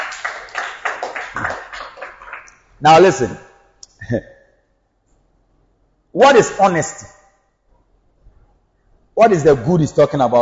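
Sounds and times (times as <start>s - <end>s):
audience clapping: 0.0s - 2.7s
speech: 2.8s - 3.5s, 4.1s - 4.3s, 6.2s - 7.2s, 9.2s - 10.4s.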